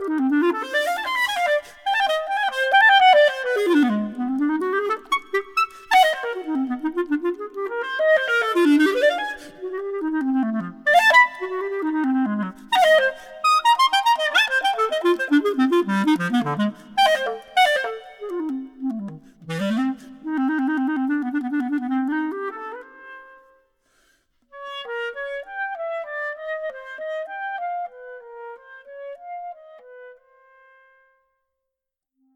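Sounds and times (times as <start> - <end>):
allegro classical piece: 0.1 - 22.8.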